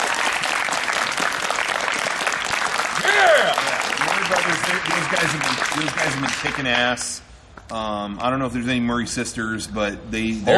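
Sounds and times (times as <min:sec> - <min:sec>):
audience round of applause: 0:00.0 - 0:07.0
speech: 0:04.7 - 0:10.5.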